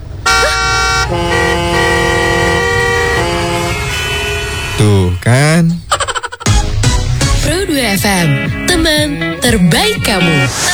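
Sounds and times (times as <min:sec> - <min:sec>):
car horn honking at a green traffic light: 0:00.0 - 0:05.9
low traffic rumble: 0:00.0 - 0:10.6
speech: 0:01.1 - 0:01.3, 0:04.8 - 0:05.8, 0:08.0 - 0:10.7.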